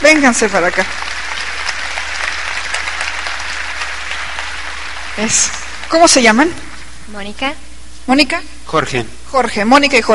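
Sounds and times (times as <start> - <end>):
crowd applause: 0.0 - 6.5
speech: 0.1 - 1.2, 5.2 - 10.1.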